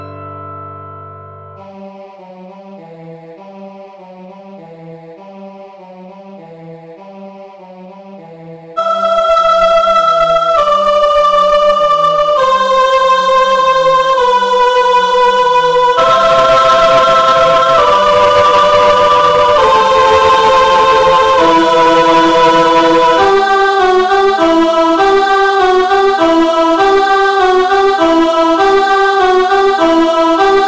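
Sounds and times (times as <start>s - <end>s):
choir singing a Christmas carol: 8.8s - 30.6s.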